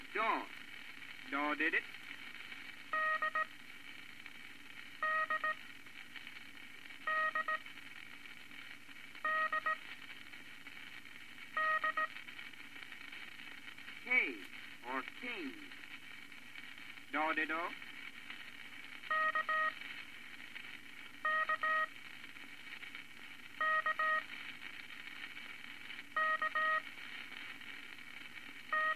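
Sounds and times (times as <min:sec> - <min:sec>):
speech: 0:00.2 - 0:00.6, 0:01.3 - 0:02.0, 0:14.1 - 0:15.8, 0:17.1 - 0:17.9, 0:21.4 - 0:22.0
International Morse code characters: 0:02.9 - 0:03.5, 0:05.0 - 0:05.6, 0:07.1 - 0:07.6, 0:09.2 - 0:09.8, 0:11.6 - 0:12.2, 0:19.1 - 0:19.8, 0:21.2 - 0:21.9, 0:23.6 - 0:24.2, 0:26.2 - 0:26.8, 0:28.7 - 0:28.9.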